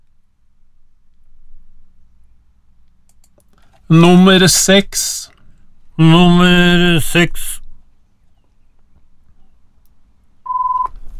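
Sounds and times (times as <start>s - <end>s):
speech: 3.9s - 5.3s, 6.0s - 7.6s
telephone ringing tone: 10.5s - 10.9s.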